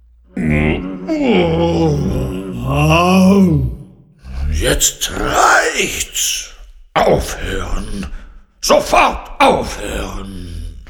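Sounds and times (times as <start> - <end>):
cello bowed hard, groaning: 0.0 - 4.5
speech: 1.1 - 3.7, 4.6 - 10.4.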